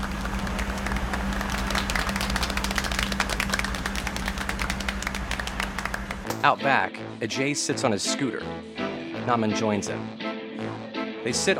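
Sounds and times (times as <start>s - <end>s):
steady low hum: 0.0s - 6.4s
men in work shirts clapping: 0.0s - 6.5s
speech: 6.4s - 10.2s, 11.2s - 11.5s.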